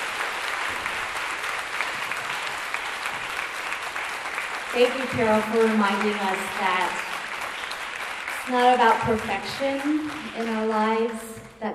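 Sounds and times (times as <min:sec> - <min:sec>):
audience applause: 0:00.0 - 0:11.2
speech: 0:04.7 - 0:07.0, 0:08.5 - 0:11.7.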